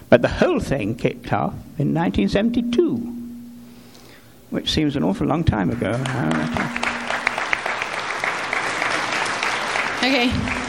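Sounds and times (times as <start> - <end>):
speech: 0.1 - 3.2, 4.5 - 6.8, 10.0 - 10.6
audience applause: 7.1 - 10.6.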